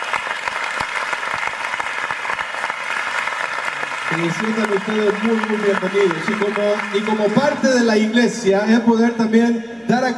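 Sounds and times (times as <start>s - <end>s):
audience applauding: 0.0s - 8.1s
speech: 4.2s - 10.1s.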